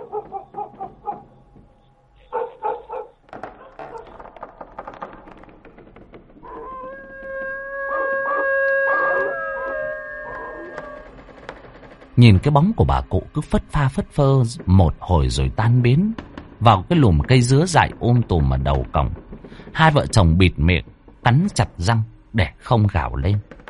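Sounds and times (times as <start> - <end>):
neighbour's dog howling and barking: 0.0 - 1.3, 2.3 - 4.2, 6.4 - 11.2
speech: 12.2 - 19.2, 19.8 - 23.5.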